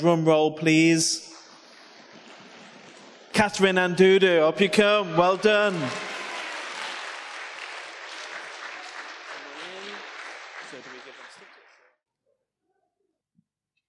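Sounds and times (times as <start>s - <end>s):
speech: 0.0s - 1.3s, 3.4s - 6.1s
audience applause: 1.4s - 11.9s.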